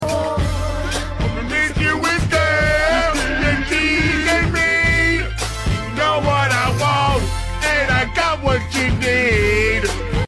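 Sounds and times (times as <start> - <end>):
man singing his heart out: 0.0 - 10.2.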